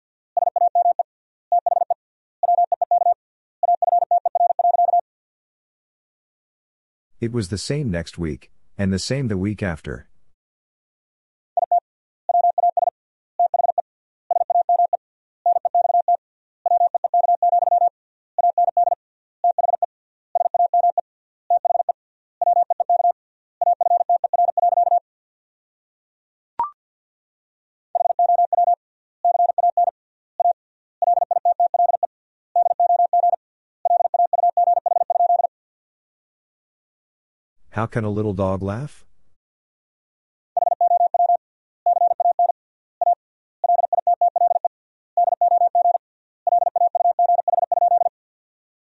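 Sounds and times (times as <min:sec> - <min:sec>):
Morse code practice tones: 0:00.4 - 0:05.0, 0:11.6 - 0:25.0, 0:28.0 - 0:35.5, 0:40.6 - 0:44.7, 0:45.2 - 0:48.1
speech: 0:07.2 - 0:10.1, 0:37.9 - 0:39.1.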